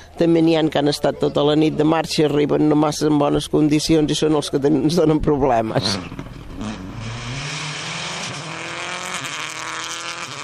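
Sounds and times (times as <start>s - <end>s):
speech: 0.2s - 6.4s
street Seat car engine roaring at high revs driven hard: 5.8s - 10.4s.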